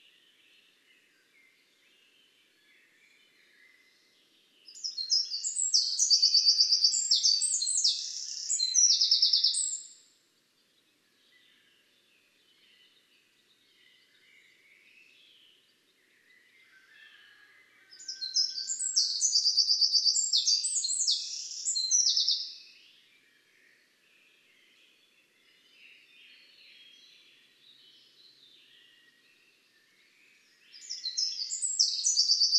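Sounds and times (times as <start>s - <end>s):
Eurasian wren song: 3.1s - 10.1s, 11.4s - 22.8s, 25.0s - 32.5s.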